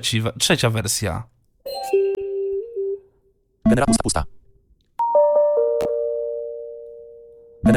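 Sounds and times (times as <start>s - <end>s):
speech: 0.0s - 1.3s, 3.7s - 4.4s
doorbell-like notification sound: 1.7s - 3.0s, 5.0s - 7.3s.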